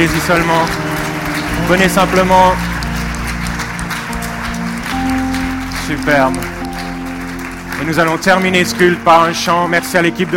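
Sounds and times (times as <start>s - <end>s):
speech: 0.0s - 0.9s, 1.6s - 2.7s, 5.9s - 6.5s, 7.8s - 10.3s
audience applause: 0.0s - 10.3s.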